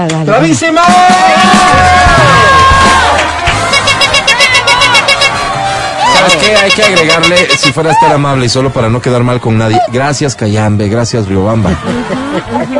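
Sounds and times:
speech: 0.0s - 2.5s, 6.2s - 12.7s
audience cheering: 0.8s - 8.4s
audience applause: 1.4s - 6.6s
laughter: 11.6s - 12.7s.

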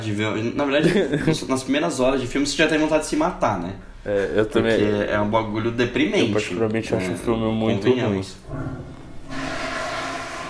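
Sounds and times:
speech: 0.0s - 8.8s
laughter: 0.7s - 1.7s
toilet flushing: 9.1s - 10.4s.

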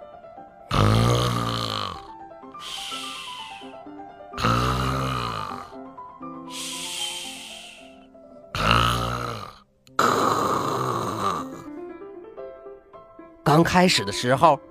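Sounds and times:
loud rhythmic snoring: 0.7s - 3.8s, 4.4s - 5.8s, 6.5s - 7.9s, 8.6s - 11.7s
speech: 13.6s - 14.6s.

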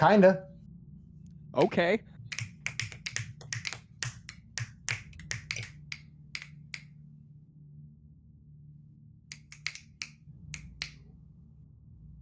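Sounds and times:
speech: 0.0s - 0.5s, 1.5s - 2.4s
finger snapping: 1.6s - 6.9s, 9.3s - 11.0s.

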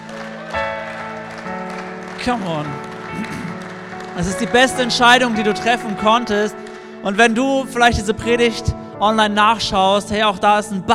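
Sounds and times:
audience applause: 0.0s - 7.1s
sustained tonal music: 0.0s - 10.5s
speech: 2.2s - 3.5s, 4.2s - 10.9s.

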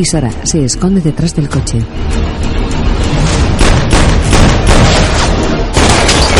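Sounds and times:
speech: 0.0s - 2.6s
gunfire exchanged around a car in a 2013 action thriller film: 3.6s - 6.3s.

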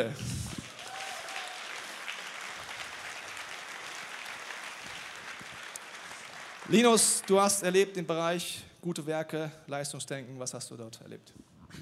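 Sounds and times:
speech: 0.0s - 0.4s, 6.7s - 11.8s
audience applause: 0.0s - 7.6s.

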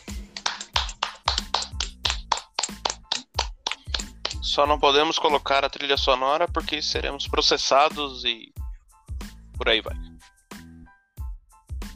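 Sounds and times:
applause: 0.1s - 4.5s
speech: 4.5s - 8.5s, 9.6s - 10.0s.

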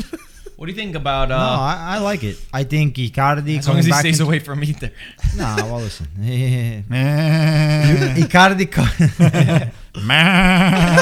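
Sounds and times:
speech: 0.2s - 10.9s
laughter: 3.6s - 10.9s
person imitating a goat bleat: 6.9s - 8.3s.

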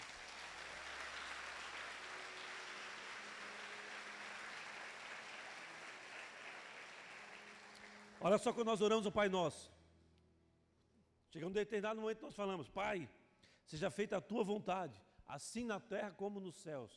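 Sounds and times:
audience applauding: 0.0s - 8.7s
speech: 8.2s - 9.8s, 11.3s - 16.9s.

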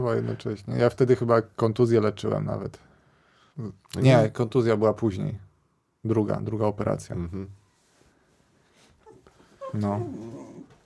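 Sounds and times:
speech: 0.0s - 2.9s, 3.6s - 7.6s, 9.7s - 10.4s
dog whimpering for attention: 9.0s - 10.8s.

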